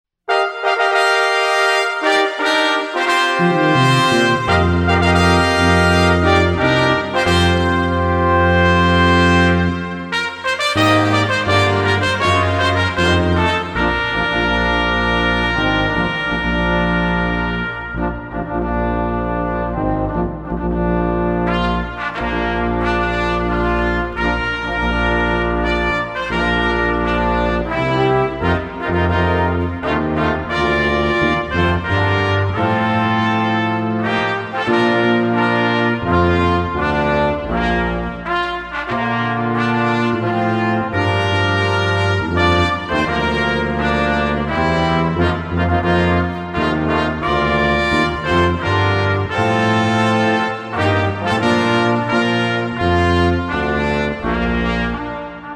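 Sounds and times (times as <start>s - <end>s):
brass quintet playing an anthem: 0.3s - 55.5s.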